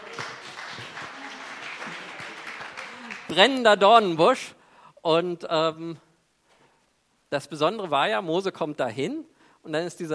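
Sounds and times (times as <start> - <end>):
applause: 0.0 - 3.7
speech: 3.3 - 6.0, 7.3 - 10.1.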